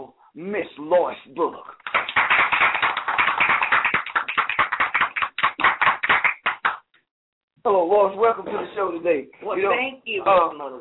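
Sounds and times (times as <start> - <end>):
speech: 0.4 - 1.8, 7.6 - 10.8
round of applause: 1.8 - 6.9.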